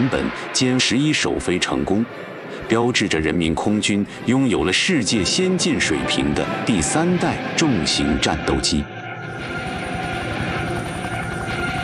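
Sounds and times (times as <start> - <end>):
speech: 0.0 - 8.9
helicopter engine drone: 0.0 - 11.8
armed helicopters rotor blades thumping flying low overhead: 9.2 - 11.8.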